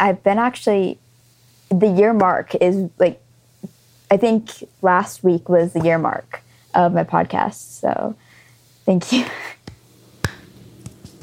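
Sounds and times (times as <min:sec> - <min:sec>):
speech: 0:00.0 - 0:01.0, 0:01.7 - 0:03.2, 0:04.1 - 0:08.2, 0:08.8 - 0:09.6
golf clap: 0:09.7 - 0:10.5.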